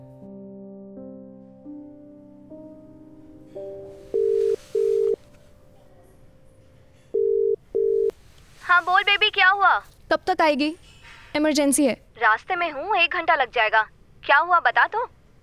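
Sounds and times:
soft music: 0.0s - 8.8s
phone ringback tone: 4.1s - 5.2s, 7.2s - 8.1s
speech: 9.6s - 15.4s.

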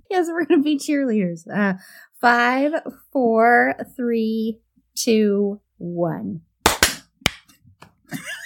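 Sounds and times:
speech: 0.1s - 6.5s, 8.1s - 8.4s
group clapping in sync: 6.7s - 7.4s.

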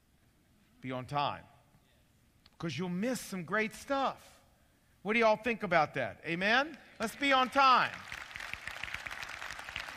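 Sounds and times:
speech: 0.8s - 1.5s, 2.6s - 4.4s, 5.0s - 8.1s
crowd clapping: 7.0s - 9.9s.

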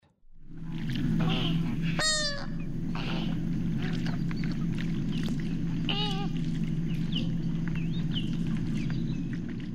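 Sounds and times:
dense low rumble: 0.2s - 9.7s
American Flamingo honking: 1.2s - 4.1s.

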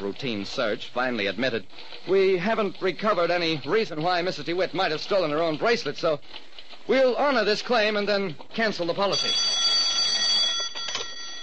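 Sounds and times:
speech: 0.0s - 9.6s
telephone ringing: 9.0s - 11.4s.

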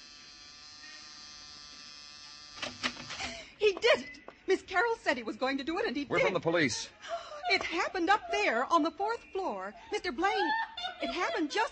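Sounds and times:
door buzzer: 0.0s - 3.2s
speech: 3.7s - 11.7s
laughter: 9.8s - 11.7s.

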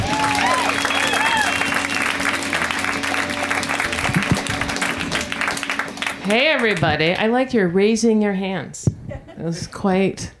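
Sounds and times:
cheering and whoops: 0.0s - 2.3s
crowd applauding: 0.0s - 7.4s
speech: 6.3s - 10.3s.

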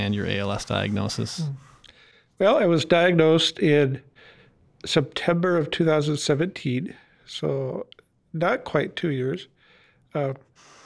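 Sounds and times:
speech: 0.0s - 1.7s, 2.4s - 4.1s, 4.8s - 9.5s, 10.1s - 10.7s
BiPAP ventilator machine airflow hiss: 0.0s - 1.9s.

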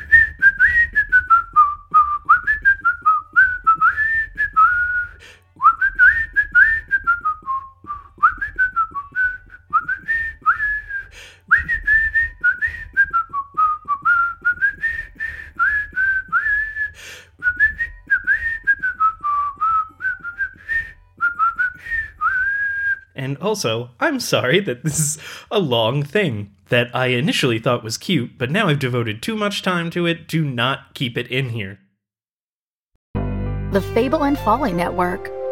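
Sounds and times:
person whistling train music: 0.0s - 23.2s
speech: 23.5s - 31.8s, 33.7s - 35.5s.

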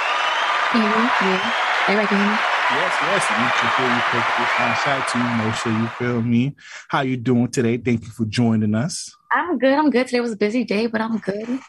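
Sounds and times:
audience applause: 0.0s - 6.6s
speech: 0.7s - 11.6s
laughter: 0.8s - 9.1s.

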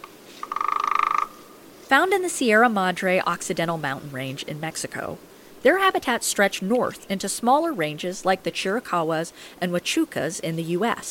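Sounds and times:
Arizona woodpecker rattle of rapid pulsed notes: 0.0s - 1.4s
speech: 1.9s - 11.0s.

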